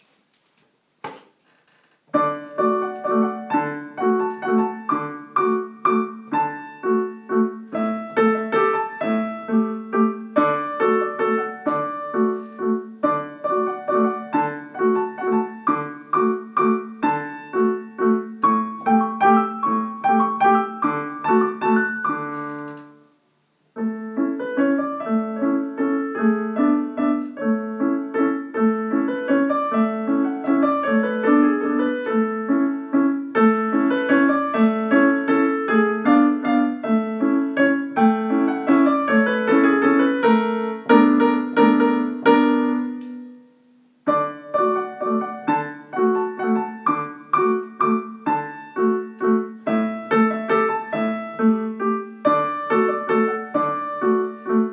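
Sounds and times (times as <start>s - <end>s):
Tyrolean waltz: 2.2s - 22.5s, 23.8s - 43.4s, 44.1s - 54.7s.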